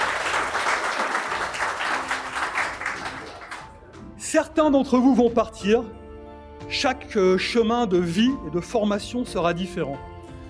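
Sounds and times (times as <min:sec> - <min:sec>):
audience applause: 0:00.0 - 0:03.8
speech: 0:04.3 - 0:06.0, 0:06.7 - 0:10.1.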